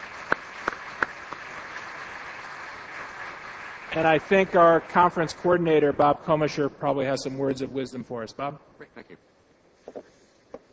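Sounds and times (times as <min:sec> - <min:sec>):
audience applause: 0:00.0 - 0:05.6
speech: 0:03.9 - 0:09.3.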